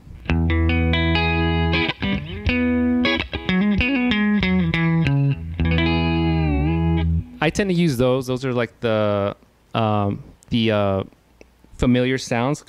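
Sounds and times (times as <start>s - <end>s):
electric guitar played on single-coil pickup setting with effects: 0.0s - 7.7s
speech: 7.4s - 11.2s, 11.8s - 12.6s.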